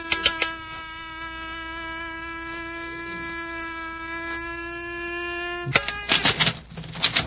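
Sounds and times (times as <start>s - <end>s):
electronic door lock buzzing hum: 0.0s - 6.4s
electronic door lock clicks and rattles: 5.7s - 7.2s.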